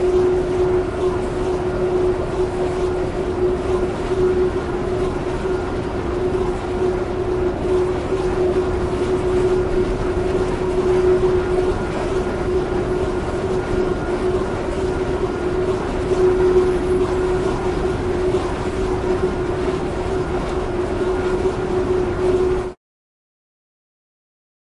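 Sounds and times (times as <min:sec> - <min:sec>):
wind turbine: 0:00.0 - 0:22.8.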